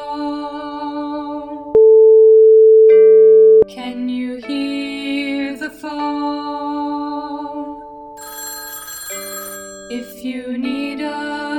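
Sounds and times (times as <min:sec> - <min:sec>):
hearing test tone beep: 0:01.8 - 0:03.7.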